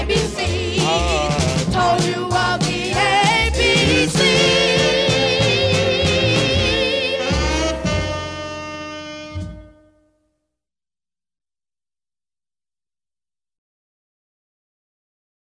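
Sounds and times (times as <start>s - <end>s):
doo-wop singing: 0.0s - 8.4s.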